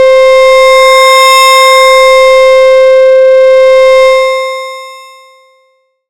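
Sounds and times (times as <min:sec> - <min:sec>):
hum: 0:00.0 - 0:04.6.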